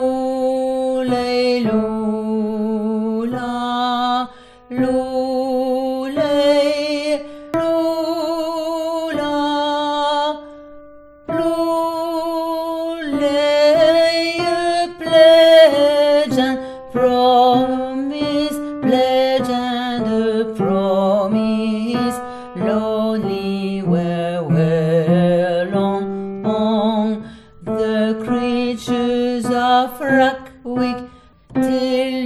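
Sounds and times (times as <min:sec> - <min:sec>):
tenor singing a lullaby: 0:00.0 - 0:32.2.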